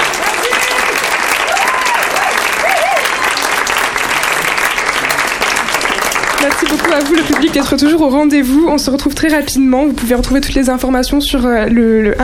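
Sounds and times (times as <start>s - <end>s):
voices and whoops: 0.0s - 3.6s
audience applause: 0.0s - 8.1s
speech: 6.4s - 12.2s.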